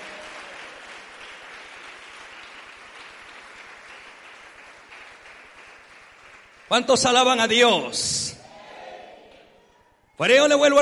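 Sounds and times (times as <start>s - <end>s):
audience applause: 0.0s - 6.8s
speech: 6.7s - 8.3s, 10.2s - 10.8s.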